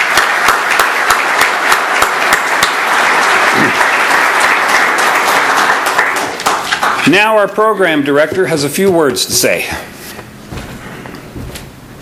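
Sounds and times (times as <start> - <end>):
audience applause: 0.0 - 7.1
speech: 7.1 - 9.9.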